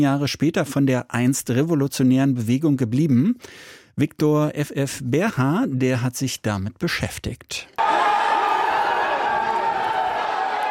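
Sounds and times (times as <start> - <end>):
speech: 0.0 - 7.9
crowd cheering outside a courthouse in Los Angeles: 7.8 - 10.7.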